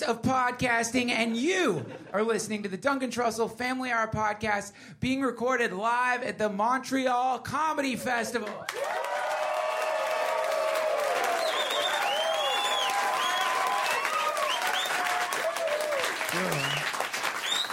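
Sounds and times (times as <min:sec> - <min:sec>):
speech: 0:00.0 - 0:09.2
live audience applause: 0:08.4 - 0:17.7.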